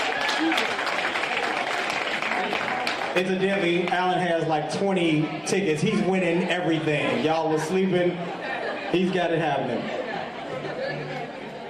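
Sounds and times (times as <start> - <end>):
audience clapping for a guest: 0.0 - 4.2
speech: 3.2 - 10.0
laughter: 5.3 - 11.6.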